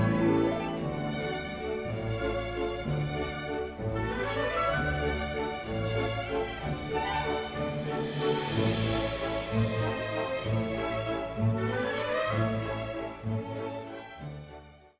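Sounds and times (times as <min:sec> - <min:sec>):
underwater theme music: 0:00.0 - 0:14.9.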